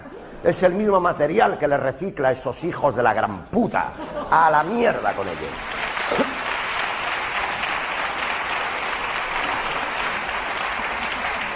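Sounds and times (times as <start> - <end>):
speech: 0.4 - 6.3
laughter: 3.8 - 6.5
audience applause: 4.6 - 11.5.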